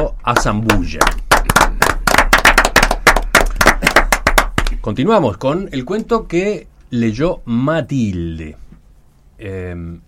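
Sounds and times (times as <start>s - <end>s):
speech: 0.0s - 1.2s, 4.8s - 8.6s, 9.4s - 10.0s
audience applause: 1.0s - 4.5s.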